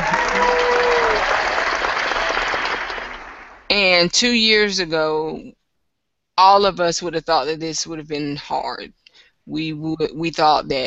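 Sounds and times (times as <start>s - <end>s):
whoop: 0.0s - 2.7s
audience clapping: 0.0s - 3.7s
speech: 4.0s - 5.6s, 6.4s - 10.8s.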